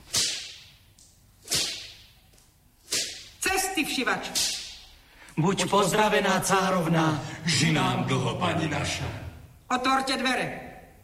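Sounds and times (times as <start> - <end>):
whip sound effect for a fairy tale: 0.0 - 2.2, 2.8 - 3.6, 4.2 - 4.9
speech: 3.8 - 4.6, 5.4 - 10.6.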